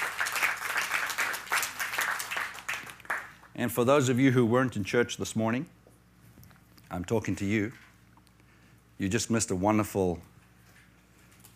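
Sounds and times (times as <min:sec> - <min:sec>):
audience hand clapping: 0:00.0 - 0:03.6
speech: 0:03.6 - 0:05.8, 0:06.9 - 0:07.8, 0:09.0 - 0:10.3.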